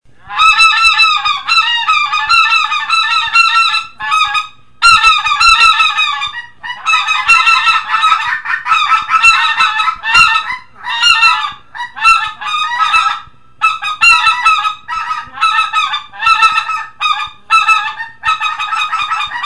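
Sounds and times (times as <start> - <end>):
greater white-fronted goose laughing yelps: 0.2 - 19.4.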